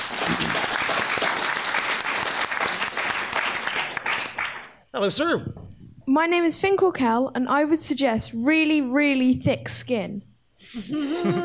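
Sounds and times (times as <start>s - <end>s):
audience applause: 0.0s - 4.8s
speech: 5.0s - 11.4s.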